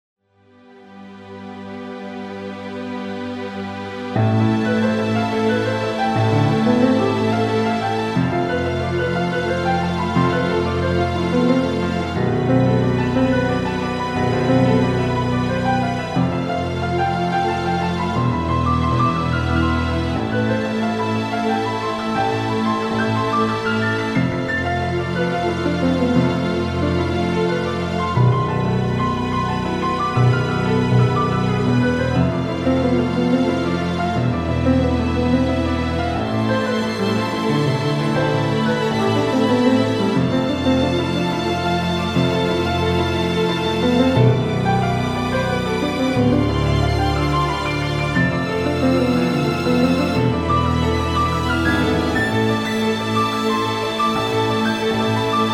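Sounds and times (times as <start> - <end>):
instrumental music: 0.5 - 55.5.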